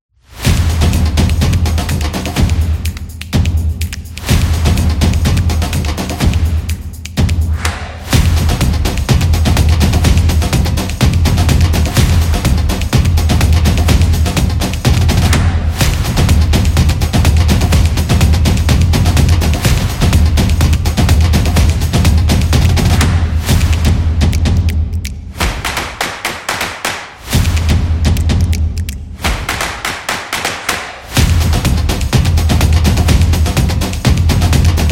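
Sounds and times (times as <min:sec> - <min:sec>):
carnival drums: 0:00.4 - 0:26.1, 0:27.2 - 0:34.8.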